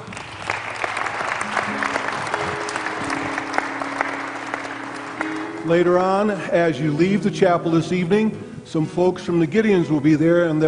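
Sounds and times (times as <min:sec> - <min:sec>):
audience applause in a chapel welcoming a youth praise band: 0:00.0 - 0:06.4
speech: 0:05.6 - 0:10.6.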